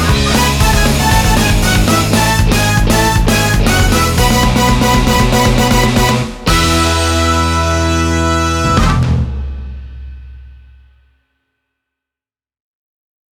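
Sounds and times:
instrumental music: 0.0s - 9.9s.

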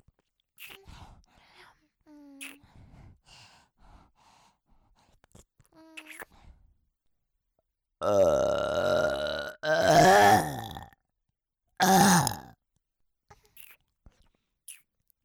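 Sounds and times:
long loud gurgling burps: 8.0s - 11.0s, 11.8s - 12.6s.

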